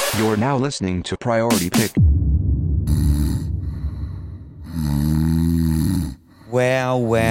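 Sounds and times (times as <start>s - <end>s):
speech: 0.2s - 2.1s, 6.5s - 7.2s
deep snoring in a podcast sting: 2.8s - 7.2s.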